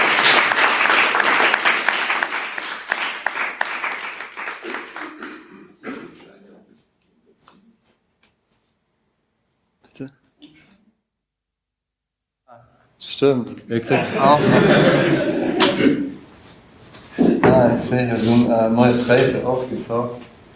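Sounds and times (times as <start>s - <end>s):
audience applause: 0.0s - 5.8s
speech: 13.2s - 15.4s, 17.8s - 20.3s
laughter: 13.7s - 16.2s.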